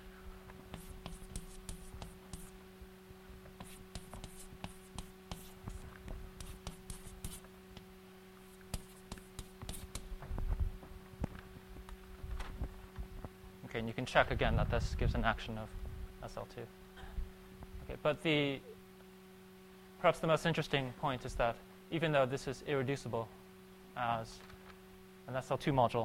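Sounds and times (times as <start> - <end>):
steady low electrical hum: 0.0 - 26.0
writing on a board during a maths lecture: 0.7 - 2.6, 3.5 - 10.1
speech: 13.8 - 16.8, 17.9 - 18.7, 20.0 - 23.4, 24.0 - 24.5, 25.3 - 26.0.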